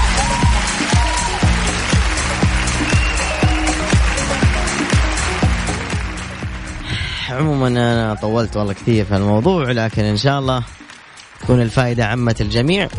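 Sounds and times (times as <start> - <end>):
applause for the parents and children: 0.0 - 6.6, 9.8 - 11.9
speech: 7.4 - 10.8, 11.4 - 12.9.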